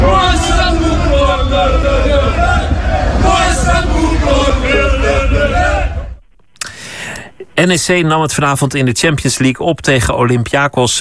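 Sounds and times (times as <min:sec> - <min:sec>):
stadium crowd of football fans: 0:00.0 - 0:06.2
speech: 0:07.6 - 0:10.9.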